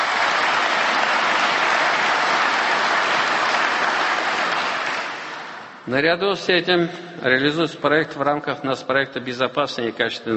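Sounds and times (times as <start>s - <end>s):
audience applause: 0.0s - 5.8s
speech: 5.9s - 10.3s.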